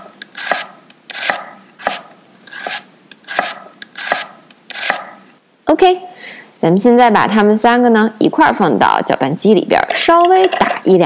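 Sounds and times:
knife chopping onion on board: 0.3s - 5.2s
speech: 5.7s - 11.0s.

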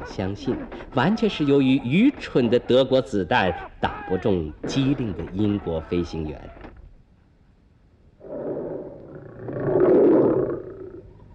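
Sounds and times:
speech: 0.1s - 6.6s
tiger roaring: 8.2s - 11.1s.

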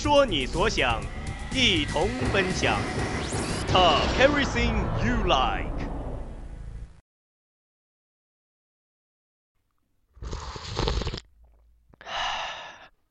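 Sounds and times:
speech: 0.0s - 5.7s
person sipping coffee: 10.1s - 13.1s.

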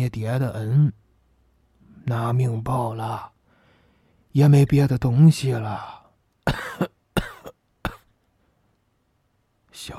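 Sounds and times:
speech: 0.0s - 1.0s, 2.0s - 3.3s, 4.4s - 6.9s, 9.8s - 9.9s
man coughing: 6.4s - 8.1s.

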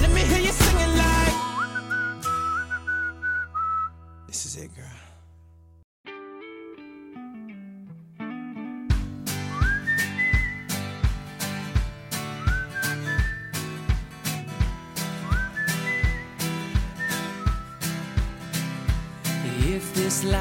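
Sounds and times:
steady pop beat with punchy drums and warm bass line: 0.0s - 3.2s, 8.9s - 20.3s
bright whistled melody as a song intro: 1.0s - 4.2s, 9.3s - 11.0s, 12.2s - 14.0s, 15.0s - 18.1s
speech: 4.6s - 5.1s, 20.2s - 20.3s.

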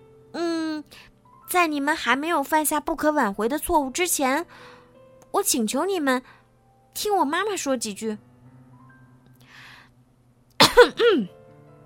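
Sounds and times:
speech: 1.5s - 6.4s, 7.0s - 8.3s, 10.8s - 11.4s
throat clearing: 10.6s - 11.3s.

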